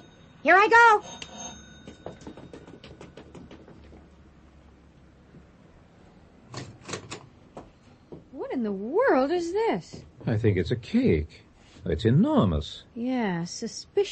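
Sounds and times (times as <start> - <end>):
doorbell ringing: 0.0 - 3.2
speech: 0.4 - 1.2, 8.6 - 14.0.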